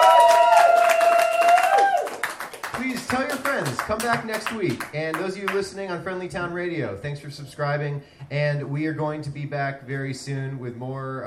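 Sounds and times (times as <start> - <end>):
live audience cheering: 0.0 - 3.0
live audience applause at the close of a show: 0.0 - 4.9
speech: 3.1 - 11.2.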